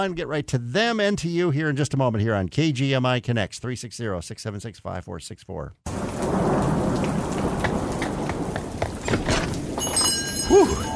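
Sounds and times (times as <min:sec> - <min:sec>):
speech: 0:00.0 - 0:06.6, 0:10.5 - 0:10.9
low thunder rumbling: 0:05.9 - 0:09.8
heavy rain: 0:05.9 - 0:10.9.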